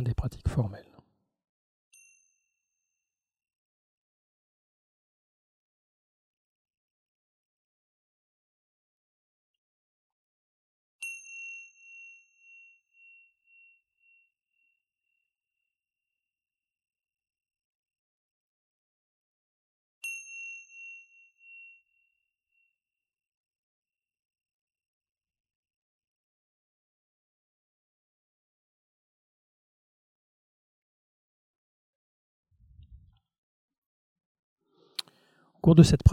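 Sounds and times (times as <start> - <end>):
speech: 0.0 - 0.9, 35.6 - 36.1
small meditation bell chiming: 1.9 - 3.5, 11.0 - 17.0, 20.0 - 24.8.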